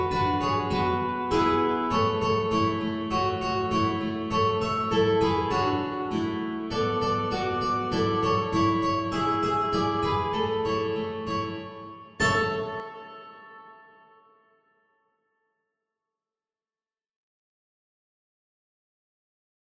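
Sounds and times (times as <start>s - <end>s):
ukulele playing a Christmas tune in D6: 0.0s - 13.8s.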